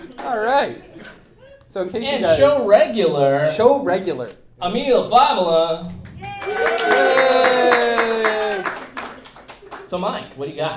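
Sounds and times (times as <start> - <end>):
speech: 0.2 - 7.8, 9.9 - 10.7
people cheering: 5.9 - 9.9
applause: 6.0 - 10.1.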